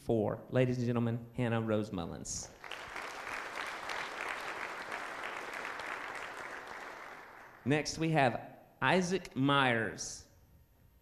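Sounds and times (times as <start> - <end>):
speech: 0.1 - 2.6, 7.6 - 10.3
audience applause: 2.6 - 7.7.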